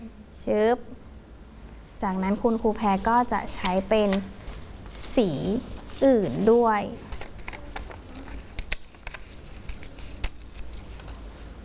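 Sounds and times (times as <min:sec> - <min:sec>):
speech: 0:00.4 - 0:01.0, 0:02.0 - 0:04.4, 0:05.0 - 0:07.1
colored paper torn slowly by hand during a craft demonstration: 0:02.9 - 0:11.2.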